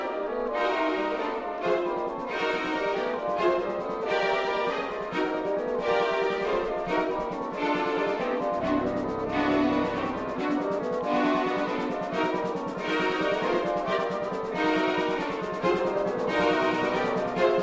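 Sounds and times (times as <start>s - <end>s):
synth: 0.1s - 17.6s.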